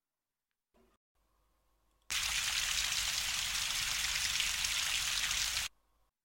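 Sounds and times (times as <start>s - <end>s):
shower water spraying in a bathroom, rinsing foam off a body: 2.1s - 5.7s.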